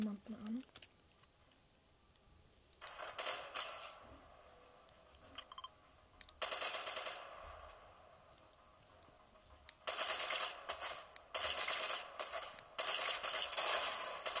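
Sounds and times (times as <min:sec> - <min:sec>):
video game gunfire: 0:02.8 - 0:05.6, 0:06.3 - 0:08.3, 0:09.1 - 0:14.3.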